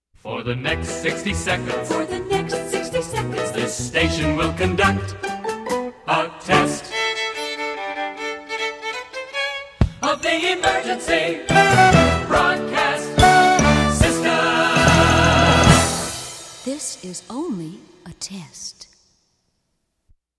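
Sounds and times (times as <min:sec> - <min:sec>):
person singing: 0:00.2 - 0:05.3, 0:06.0 - 0:07.5, 0:10.0 - 0:16.1.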